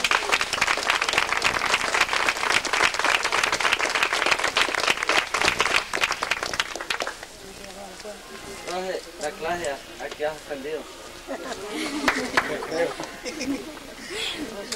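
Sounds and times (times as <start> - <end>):
audience applause: 0.0 - 7.3, 11.9 - 13.0
speech: 9.4 - 14.7
laughter: 11.2 - 14.7.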